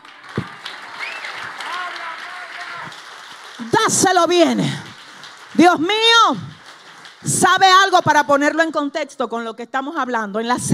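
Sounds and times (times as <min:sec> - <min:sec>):
audience applause: 0:00.0 - 0:07.6
rising whistles from the audience: 0:01.0 - 0:01.5
speech: 0:03.6 - 0:04.9, 0:05.6 - 0:06.5, 0:07.3 - 0:10.7.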